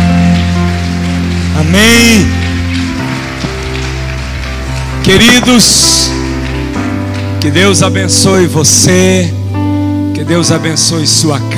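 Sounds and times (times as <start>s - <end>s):
audience applauding: 0.0s - 8.7s
speech: 1.6s - 2.5s, 5.1s - 6.2s, 7.4s - 9.4s, 10.2s - 11.5s.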